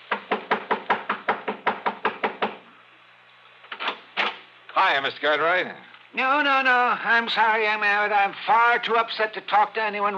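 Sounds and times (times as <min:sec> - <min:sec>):
fist pounding on a front door: 0:00.1 - 0:02.7
speech: 0:04.8 - 0:10.1.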